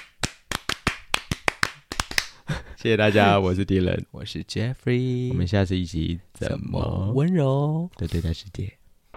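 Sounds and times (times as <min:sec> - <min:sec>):
hosts clapping a rhythmic encouragement cheer: 0:00.0 - 0:02.4
speech: 0:02.8 - 0:08.8.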